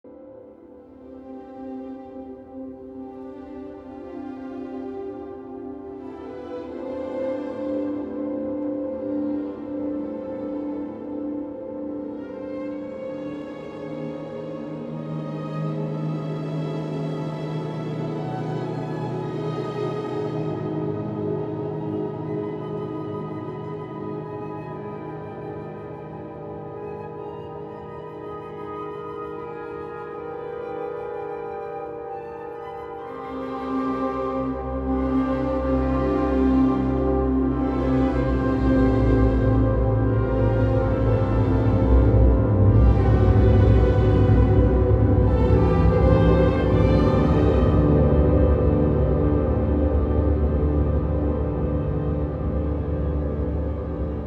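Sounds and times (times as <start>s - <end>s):
classical music: 0.0s - 54.2s.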